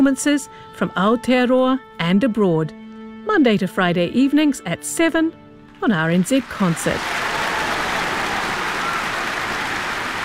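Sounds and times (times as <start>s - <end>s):
speech: 0.0s - 7.2s
applause from a large crowd: 6.4s - 10.2s.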